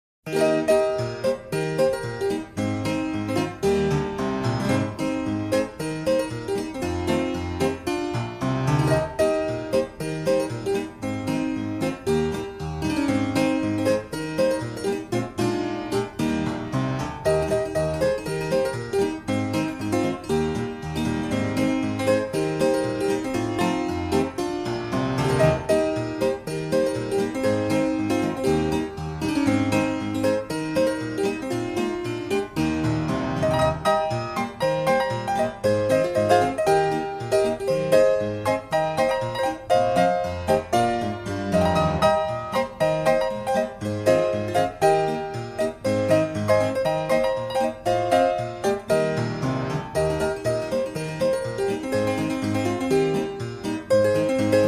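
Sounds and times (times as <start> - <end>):
piano: 0.2 - 54.6.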